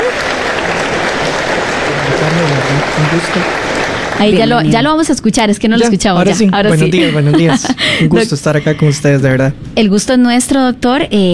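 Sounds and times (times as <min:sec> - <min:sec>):
laughter: 0:00.0 - 0:04.9, 0:05.8 - 0:09.5
audience applause: 0:00.0 - 0:05.0
speech: 0:02.4 - 0:11.3.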